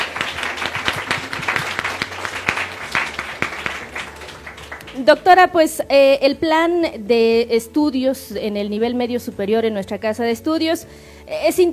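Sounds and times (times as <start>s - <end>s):
crowd audience applause: 0.0s - 5.3s
speech: 5.0s - 11.7s.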